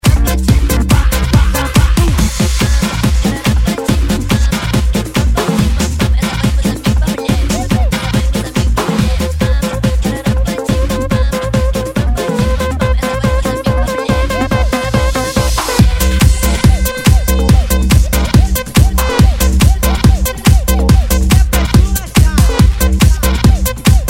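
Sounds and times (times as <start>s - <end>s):
electro funk dance remix: 0.0s - 24.0s.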